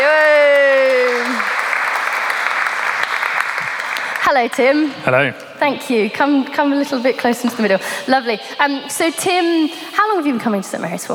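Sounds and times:
audience applause: 0:00.0 - 0:04.3
speech: 0:04.3 - 0:11.1.

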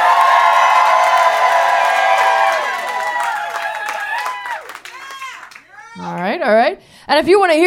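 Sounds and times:
loud crowd cheering and whooping: 0:00.0 - 0:06.1
speech: 0:06.4 - 0:07.6.

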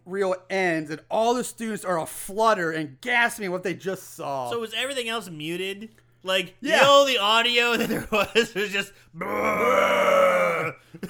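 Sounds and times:
speech: 0:00.2 - 0:11.0
laughter: 0:07.6 - 0:08.9
voice imitating a Bigfoot roar: 0:09.2 - 0:10.8.

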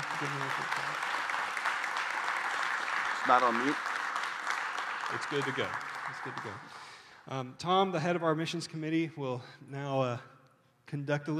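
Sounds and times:
applause welcoming the pastors: 0:00.0 - 0:07.1
speech: 0:00.2 - 0:01.2, 0:03.2 - 0:03.9, 0:05.1 - 0:10.3, 0:10.9 - 0:11.3.

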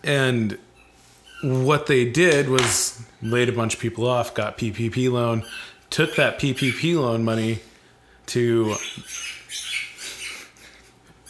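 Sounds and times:
speech: 0:00.0 - 0:00.7, 0:01.4 - 0:07.7, 0:08.3 - 0:09.6
low steady hum: 0:00.0 - 0:11.2
squeaky ball toy squeaking: 0:05.4 - 0:07.0, 0:08.7 - 0:10.4.

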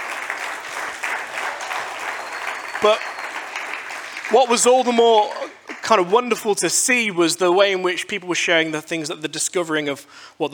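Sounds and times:
audience applause: 0:00.0 - 0:06.3
speech: 0:02.8 - 0:03.1, 0:04.3 - 0:10.5.

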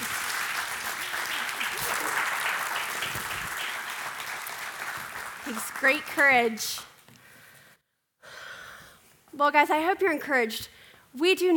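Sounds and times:
sustained audience applause: 0:00.0 - 0:06.6
speech: 0:05.6 - 0:06.9, 0:09.4 - 0:11.5.

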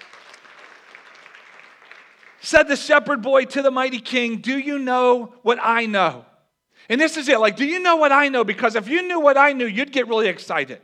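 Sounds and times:
audience applause: 0:00.0 - 0:02.4
speech: 0:02.4 - 0:10.8.

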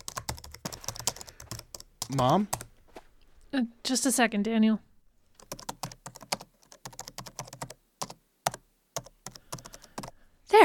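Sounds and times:
rapid typing on a computer keyboard: 0:00.0 - 0:02.7, 0:05.4 - 0:10.2
speech: 0:02.1 - 0:02.6, 0:03.5 - 0:04.9.

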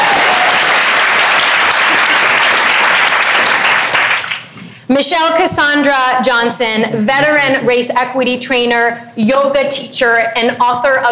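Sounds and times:
audience applause: 0:00.0 - 0:04.5
speech: 0:04.9 - 0:11.1.

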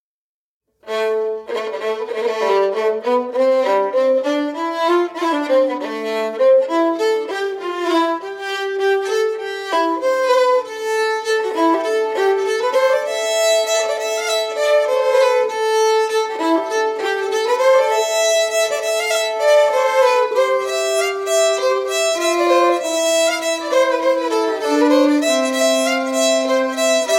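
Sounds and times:
reel tune: 0:01.8 - 0:27.1.

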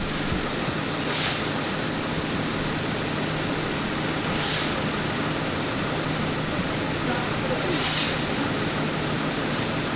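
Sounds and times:
road crew filling pothole with asphalt: 0:00.0 - 0:09.9.

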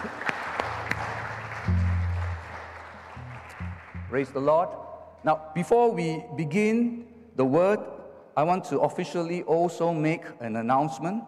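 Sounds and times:
church congregation clapping to welcome guests during a service: 0:00.0 - 0:04.8
speech: 0:04.1 - 0:11.2.

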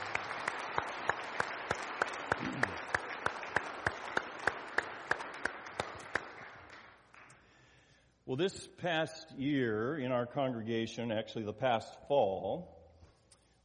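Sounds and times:
audience applause: 0:00.0 - 0:07.3
speech: 0:08.3 - 0:12.8.

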